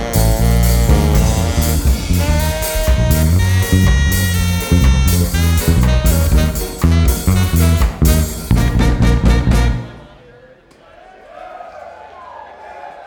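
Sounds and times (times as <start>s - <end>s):
live broadcast music mix: 0.0s - 10.2s.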